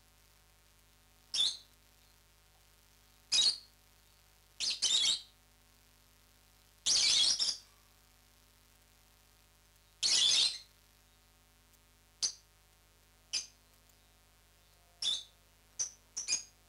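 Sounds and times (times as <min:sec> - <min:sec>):
lovebird chirps, parrots Agapornis: 0:01.3 - 0:02.2, 0:03.3 - 0:03.7, 0:04.6 - 0:05.3, 0:06.9 - 0:07.7, 0:09.9 - 0:10.7, 0:12.2 - 0:12.5, 0:13.3 - 0:16.6.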